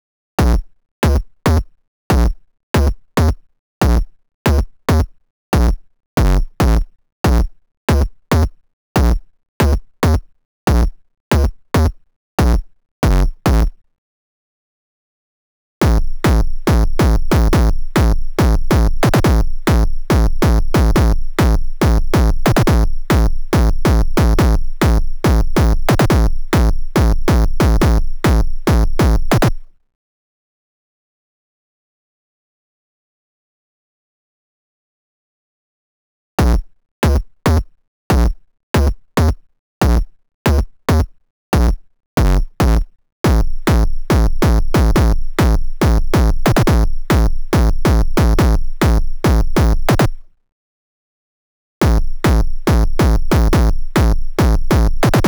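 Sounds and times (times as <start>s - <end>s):
kick drum: 0.4s - 11.6s, 12.4s - 13.7s, 15.8s - 29.7s, 36.4s - 50.2s, 51.8s - 55.2s.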